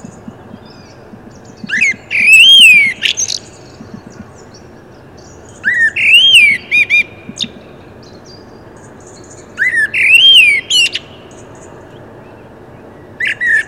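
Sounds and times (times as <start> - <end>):
common blackbird singing: 0.0 - 13.6.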